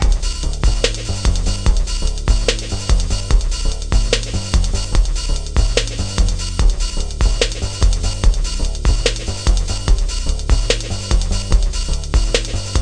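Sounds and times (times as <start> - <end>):
simple music loop: 0.0 - 12.7.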